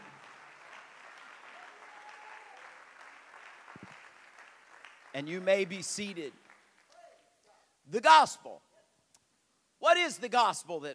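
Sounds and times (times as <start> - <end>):
audience clapping: 0.0 - 7.2
speech: 5.2 - 6.4, 7.9 - 8.7, 10.0 - 10.9.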